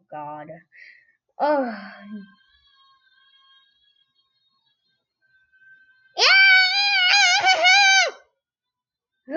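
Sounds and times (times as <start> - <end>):
speech: 0.1 - 2.4
child yelling: 6.2 - 8.2.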